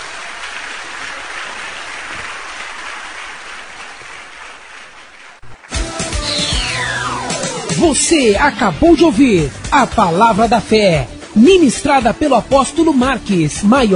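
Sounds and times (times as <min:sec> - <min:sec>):
audience applauding: 0:00.0 - 0:07.0
musical jingle with a gliding high tone: 0:06.0 - 0:09.3
speech: 0:07.8 - 0:13.9.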